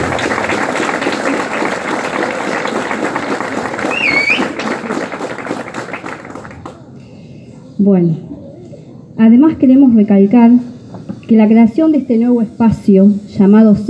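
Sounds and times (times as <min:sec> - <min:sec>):
crowd applauding: 0:00.0 - 0:06.9
short whistle: 0:03.8 - 0:04.6
speech: 0:07.8 - 0:08.3, 0:09.2 - 0:10.7, 0:11.3 - 0:13.8.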